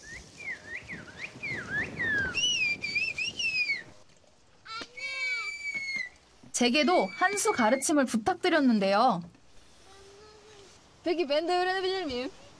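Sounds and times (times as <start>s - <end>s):
loud shrill whistling without fingers in whistled speech phrases: 0.0s - 4.0s, 5.0s - 6.2s, 6.8s - 8.0s
faint noise: 0.0s - 12.5s
speech: 6.6s - 9.4s, 11.0s - 12.4s.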